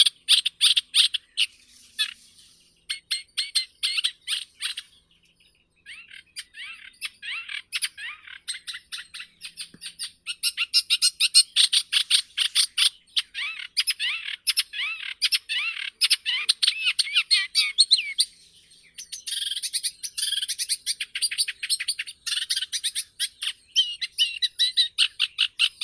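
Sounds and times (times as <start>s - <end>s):
reed warbler Acrocephalus scirpaceus: 0.0s - 25.8s.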